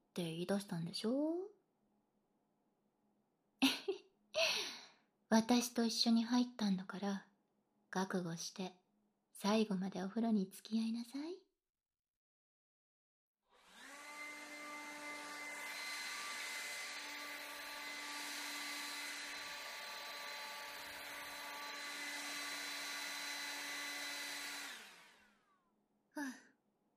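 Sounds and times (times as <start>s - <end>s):
speech: 0.2s - 1.5s, 5.3s - 7.3s, 7.9s - 8.8s, 9.4s - 11.4s
hair dryer blowing while drying hair: 13.6s - 25.5s.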